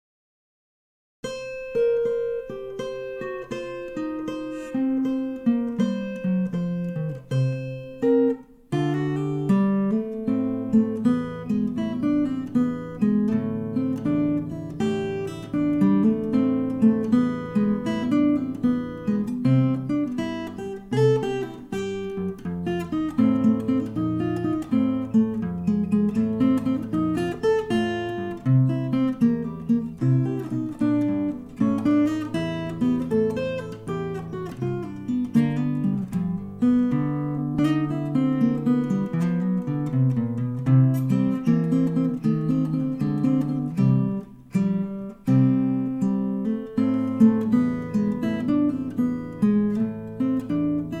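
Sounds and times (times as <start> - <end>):
blues music: 1.5 - 50.9.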